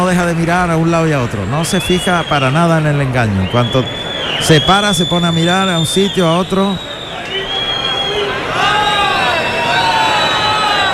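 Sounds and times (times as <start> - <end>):
bullfight crowd protesting: 0.0 - 10.9
speech: 0.1 - 7.4
bullfight crowd whistles: 1.6 - 10.9
bullfight crowd shouting: 3.6 - 10.9.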